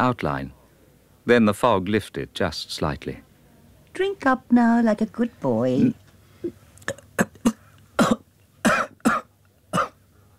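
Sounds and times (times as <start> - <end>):
speech: 0.0 - 0.6, 1.3 - 3.3, 4.0 - 7.6
choking coughs: 6.8 - 10.0.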